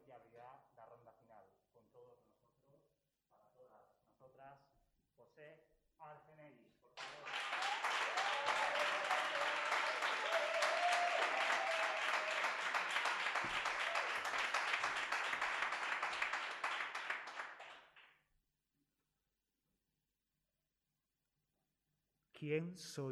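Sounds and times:
speech: 0.2s - 8.8s, 22.4s - 23.1s
audience applause for a poet: 7.0s - 17.9s.

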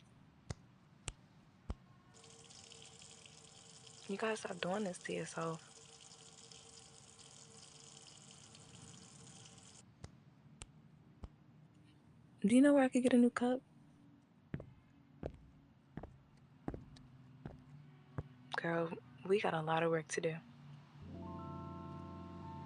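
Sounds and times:
hot water running from tap: 2.2s - 9.8s
speech: 4.1s - 5.7s, 12.4s - 13.7s, 18.7s - 20.5s.

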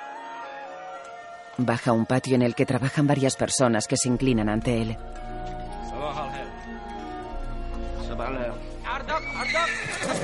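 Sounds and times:
music: 0.0s - 10.2s
speech: 1.6s - 6.2s, 8.2s - 10.2s
horse whinnying in a medieval film scene: 9.1s - 10.2s.

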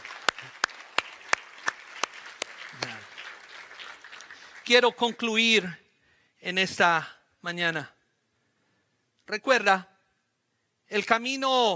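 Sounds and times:
audience clapping: 0.0s - 5.7s
speech: 4.7s - 5.8s, 6.4s - 8.0s, 9.3s - 9.9s, 10.9s - 11.7s.

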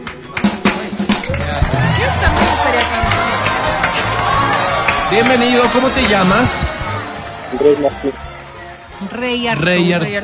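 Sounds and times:
cheers: 1.3s - 9.4s
audience applause: 1.3s - 9.9s
speech: 5.1s - 6.8s, 7.5s - 8.3s, 9.0s - 10.2s.

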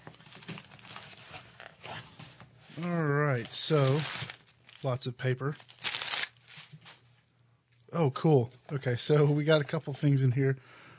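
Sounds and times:
speech: 2.8s - 5.8s, 7.9s - 10.8s
package being cut open with scissors and ripped: 5.6s - 6.7s.

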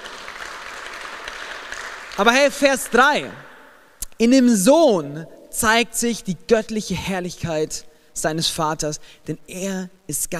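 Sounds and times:
audience clapping: 0.0s - 3.5s
speech: 2.2s - 3.5s, 4.2s - 10.3s.

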